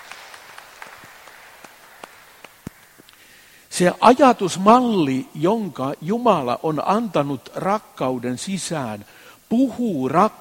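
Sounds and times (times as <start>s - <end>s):
audience applause: 0.0s - 3.1s
speech: 3.8s - 10.3s.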